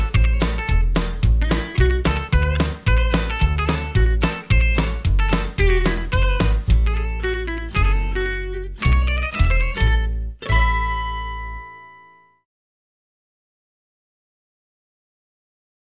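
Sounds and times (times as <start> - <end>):
country swing music: 0.0 - 11.9.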